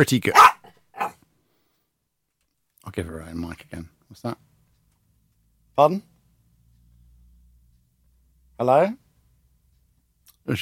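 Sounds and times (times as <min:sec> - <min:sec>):
speech: 0:00.0 - 0:00.6, 0:02.9 - 0:04.5, 0:05.8 - 0:06.1, 0:08.6 - 0:09.0, 0:10.4 - 0:10.6
dog barking and yipping: 0:00.3 - 0:01.2.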